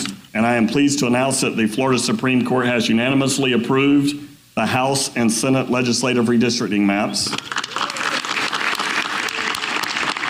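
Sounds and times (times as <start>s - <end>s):
speech: 0.4s - 7.6s
applause: 7.3s - 10.2s
cheering: 7.5s - 10.2s.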